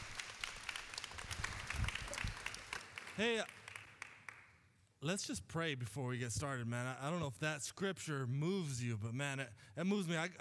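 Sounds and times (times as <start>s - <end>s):
audience applause: 0.0s - 4.5s
speech: 3.2s - 3.6s, 5.0s - 10.3s.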